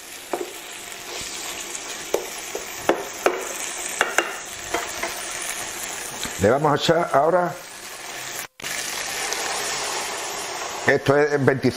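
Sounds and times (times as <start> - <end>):
onion gently frying in a pan: 0.0 - 11.7
speech: 6.4 - 7.6, 10.9 - 11.7.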